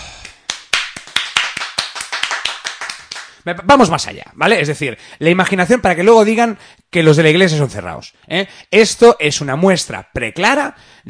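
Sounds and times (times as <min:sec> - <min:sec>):
audience applause: 0:00.5 - 0:03.3
speech: 0:03.4 - 0:11.0.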